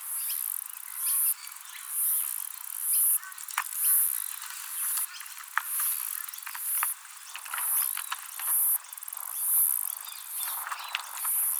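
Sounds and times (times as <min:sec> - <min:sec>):
Myopsalta septa cicada song: 0:00.2 - 0:11.5
sharp clicks: 0:03.5 - 0:11.5.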